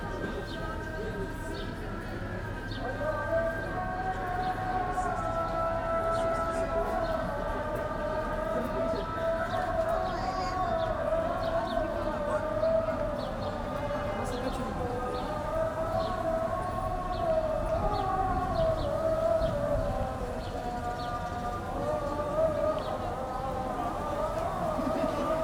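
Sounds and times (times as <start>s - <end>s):
loud voices on a city street in Turkey: 0.0s - 25.4s.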